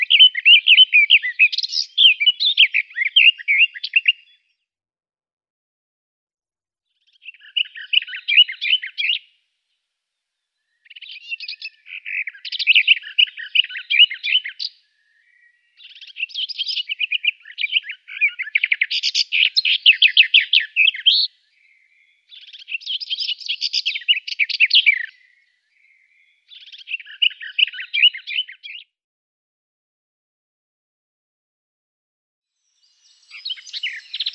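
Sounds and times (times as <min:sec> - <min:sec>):
garden warbler song: 0:00.0 - 0:04.8, 0:06.8 - 0:29.0, 0:32.5 - 0:34.3.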